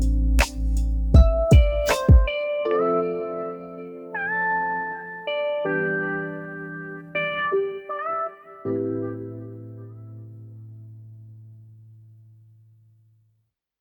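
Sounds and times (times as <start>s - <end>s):
lofi focus music: 0.0s - 10.5s.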